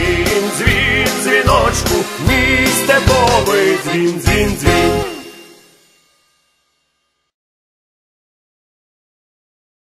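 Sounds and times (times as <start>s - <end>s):
Ukrainian folk music: 0.0s - 5.9s.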